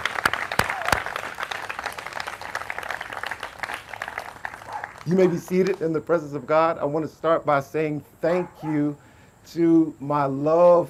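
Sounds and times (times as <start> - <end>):
audience applauding: 0.0 - 5.8
speech: 5.0 - 10.8.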